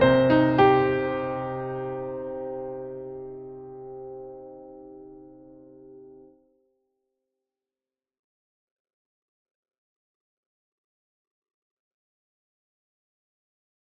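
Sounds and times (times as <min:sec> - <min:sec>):
piano music: 0:00.0 - 0:06.3.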